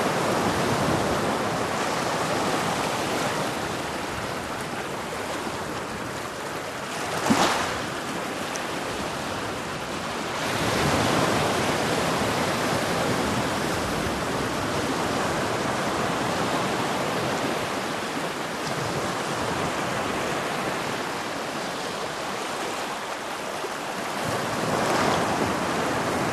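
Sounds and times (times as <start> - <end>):
gentle rolling waves on a black sand beach: 0.0 - 26.3.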